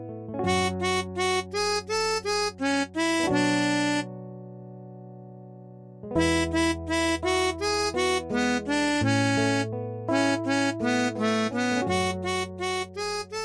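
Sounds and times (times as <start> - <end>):
MIDI salsa music: 0.5 - 4.0, 6.2 - 13.4.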